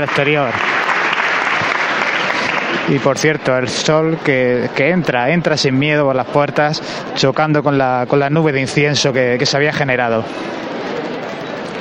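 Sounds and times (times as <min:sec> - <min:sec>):
speech: 0:00.0 - 0:00.7, 0:02.8 - 0:10.7
crowd applause as church doors open: 0:00.0 - 0:05.2, 0:08.5 - 0:11.7.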